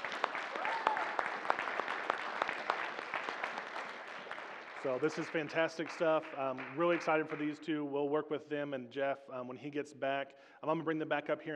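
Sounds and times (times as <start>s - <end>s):
audience applause: 0.0s - 7.4s
person whooping: 0.5s - 1.3s
speech: 4.8s - 11.5s.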